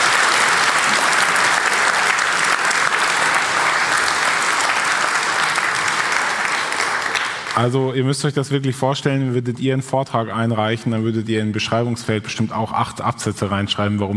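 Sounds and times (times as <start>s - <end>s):
audience applause: 0.0s - 7.7s
speech: 7.6s - 14.1s.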